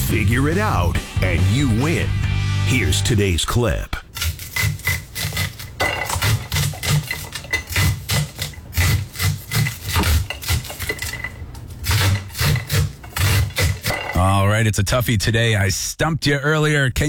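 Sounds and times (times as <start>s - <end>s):
speech: 0.1s - 4.0s, 14.6s - 17.0s
corn being shaved off the cob: 4.1s - 13.9s.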